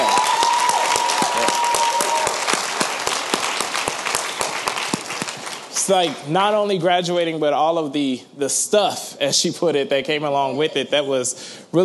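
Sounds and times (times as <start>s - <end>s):
church congregation applauding graduates at a service: 0.0s - 6.3s
speech: 5.9s - 11.8s.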